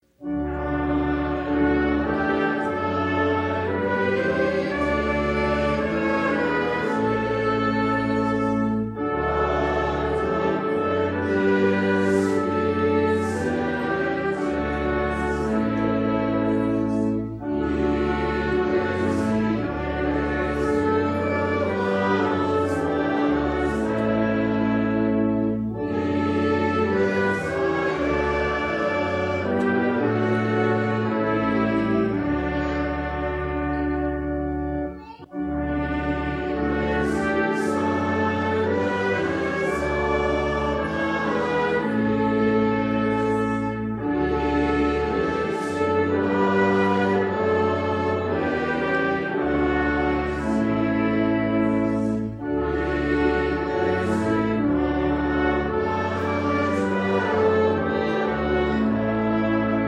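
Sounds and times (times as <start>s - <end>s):
trumpet: 0.0s - 59.8s.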